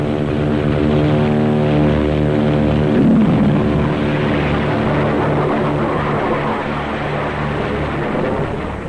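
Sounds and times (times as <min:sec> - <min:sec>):
propeller plane taking off with rocket boosters: 0:00.0 - 0:08.8
rocket booster blast: 0:02.8 - 0:05.0.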